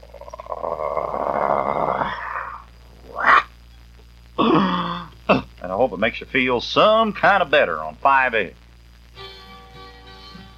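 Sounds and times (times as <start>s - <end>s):
growl: 0.0s - 3.5s
speech: 5.9s - 8.6s.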